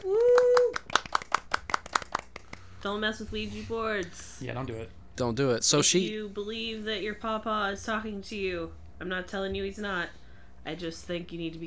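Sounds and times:
applause: 0.0 - 2.8
speech: 2.8 - 11.6.

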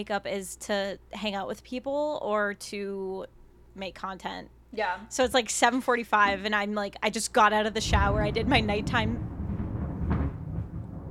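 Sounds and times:
speech: 0.0 - 9.3
loud thunder clap: 7.6 - 11.0.

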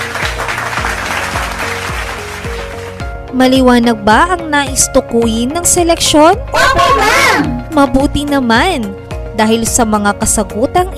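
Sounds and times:
students in a classroom applauding themselves: 0.0 - 3.1
speech: 3.3 - 10.9.

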